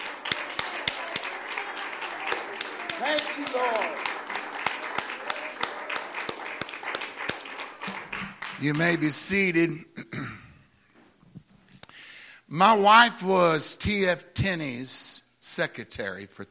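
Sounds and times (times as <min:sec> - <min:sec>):
audience clapping: 0:00.0 - 0:09.4
speech: 0:03.0 - 0:04.1, 0:08.6 - 0:09.9, 0:12.6 - 0:16.5.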